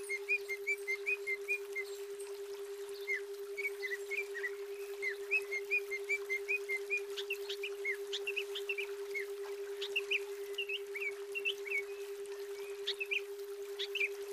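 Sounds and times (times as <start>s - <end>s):
female greater green leafbird singing: 0.0s - 14.2s.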